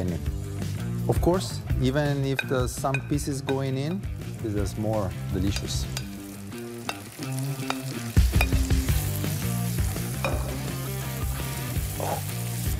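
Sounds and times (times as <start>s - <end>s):
speech: 1.1s - 6.0s
vegetables frying and sizzling in a pan: 5.1s - 12.7s.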